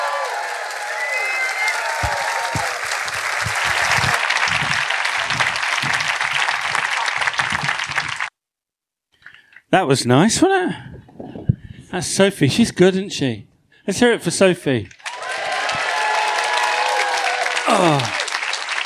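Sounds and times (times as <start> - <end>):
faint cheering: 0.0 - 6.0, 15.0 - 18.6
crowd applauding rapturously: 0.0 - 8.3, 15.0 - 18.8
speech: 9.7 - 10.9, 11.9 - 15.0.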